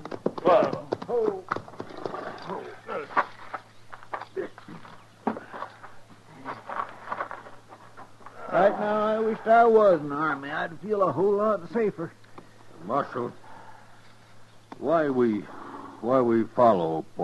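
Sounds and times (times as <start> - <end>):
several horses clopping to a stop: 0.0 - 8.4
speech: 9.5 - 12.2, 12.8 - 13.4, 14.8 - 17.2.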